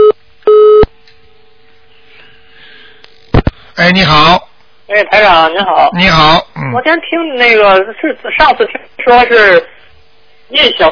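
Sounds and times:
telephone busy tone after a dropped call: 0.0s - 0.9s
speech: 3.8s - 9.7s, 10.5s - 10.9s.

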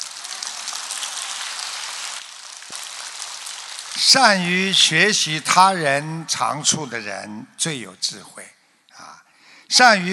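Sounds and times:
applause: 0.0s - 4.9s
speech: 4.0s - 8.6s, 9.7s - 10.1s.

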